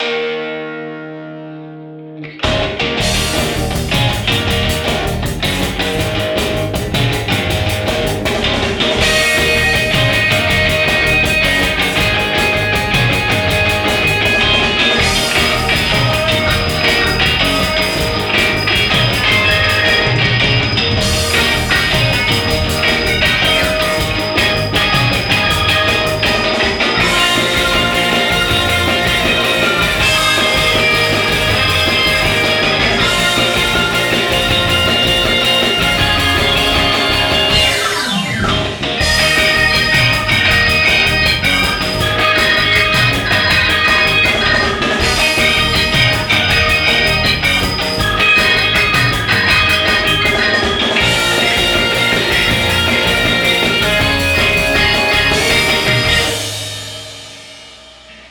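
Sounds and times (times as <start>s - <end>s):
garage rock music: 0.0s - 58.2s.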